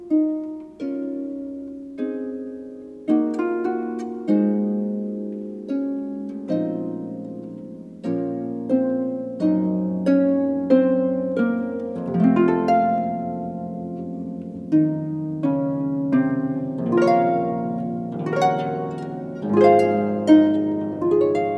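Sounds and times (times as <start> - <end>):
sarabande played on a pedal harp: 0.0 - 21.5.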